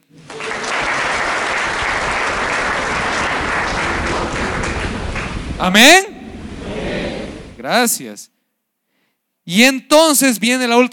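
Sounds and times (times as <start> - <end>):
applause: 0.0 - 5.6
speech: 5.6 - 6.1, 7.7 - 8.4, 9.5 - 10.9.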